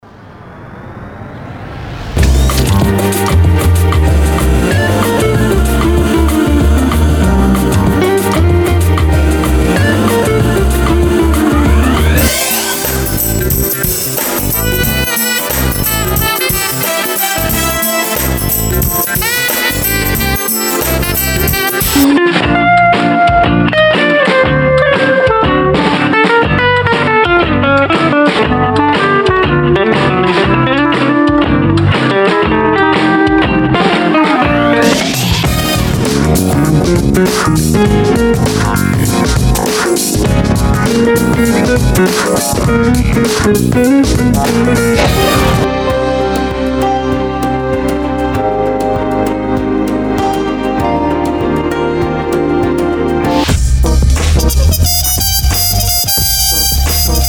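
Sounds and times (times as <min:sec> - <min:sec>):
jazz mix: 0:02.2 - 0:31.2, 0:32.1 - 0:57.2.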